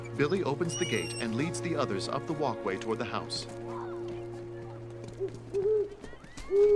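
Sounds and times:
speech: 0.2s - 3.7s
owl hooting: 5.2s - 6.7s.

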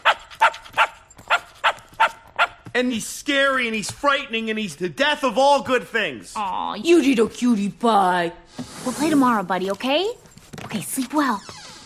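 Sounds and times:
dog barking: 0.0s - 2.6s
speech: 2.8s - 11.6s.

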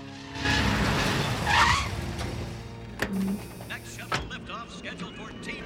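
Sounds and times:
truck sharply turning a corner: 0.1s - 4.9s
truck tires skidding: 0.2s - 4.4s.

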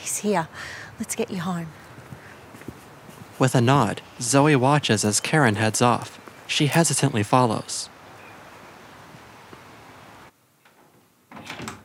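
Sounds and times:
speech: 0.2s - 1.8s, 3.4s - 8.0s
door opening into a bedroom: 10.7s - 11.8s.

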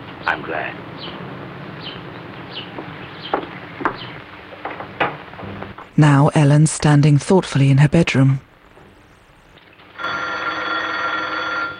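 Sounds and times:
speech: 0.3s - 3.4s, 6.0s - 8.5s
telephone bell ringing in a private residence: 10.0s - 11.7s.

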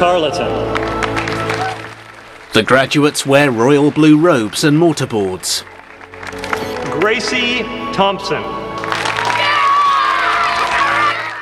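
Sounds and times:
speech: 0.0s - 0.9s, 2.6s - 6.4s, 7.0s - 8.6s
brothers cheering and whooping at a graduation ceremony: 0.7s - 2.2s, 8.8s - 11.4s.

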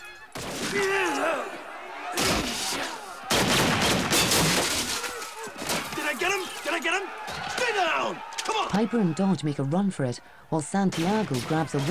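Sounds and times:
gunshots in an audio drama shootout: 0.3s - 1.2s, 2.0s - 8.8s, 10.9s - 11.8s
raised voices: 0.6s - 3.8s, 4.8s - 11.8s
speech: 0.7s - 1.6s, 6.1s - 11.8s.

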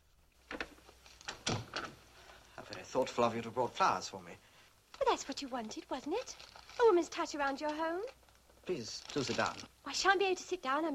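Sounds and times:
lounge door being shut: 0.5s - 2.0s
speech: 2.9s - 4.5s, 5.2s - 10.9s.

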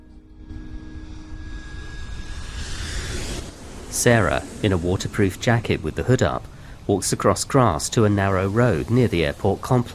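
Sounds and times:
aircraft engine roar on the runway at Fiumicino Airport: 0.0s - 7.5s
rushing hiss: 1.7s - 9.9s
speech: 4.0s - 9.9s.

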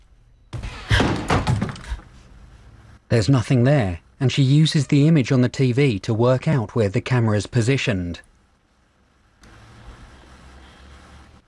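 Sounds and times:
slightly ajar door being kicked open: 0.5s - 2.1s
speech: 3.1s - 8.3s.

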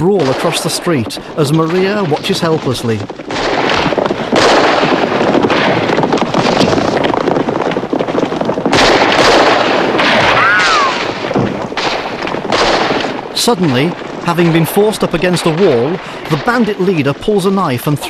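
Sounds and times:
speech: 0.0s - 3.7s, 13.5s - 18.0s
gunshots in a Western shootout: 0.0s - 18.0s
rushing wind-like noise: 3.1s - 16.4s.

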